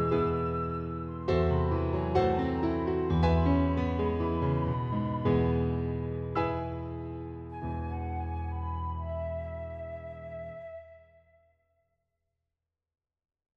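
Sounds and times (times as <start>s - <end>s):
flute: 0.0s - 6.0s, 7.5s - 11.6s.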